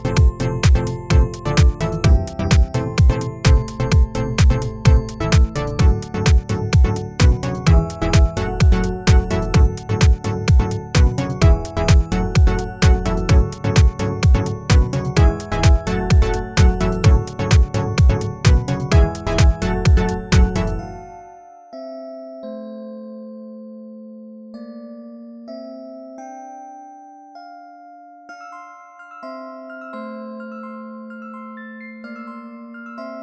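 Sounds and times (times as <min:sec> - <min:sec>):
deep house mix: 0:00.0 - 0:21.0
glockenspiel: 0:00.0 - 0:33.2.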